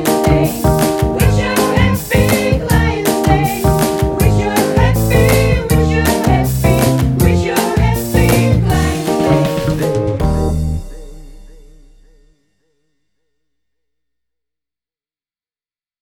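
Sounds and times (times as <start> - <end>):
music: 0.0 - 12.6.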